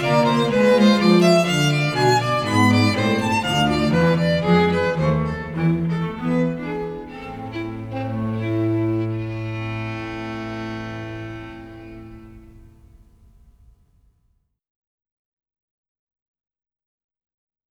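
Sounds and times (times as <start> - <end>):
invention: 0.0 - 13.6.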